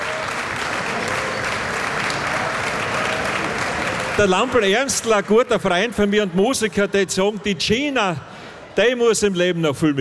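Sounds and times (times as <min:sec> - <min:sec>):
applause: 0:00.0 - 0:06.1
speech: 0:04.2 - 0:09.9.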